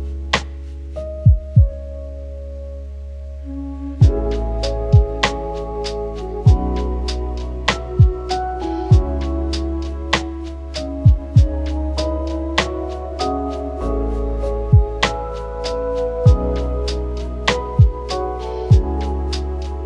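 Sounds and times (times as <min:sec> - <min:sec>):
lofi hip hop: 0:03.9 - 0:19.8.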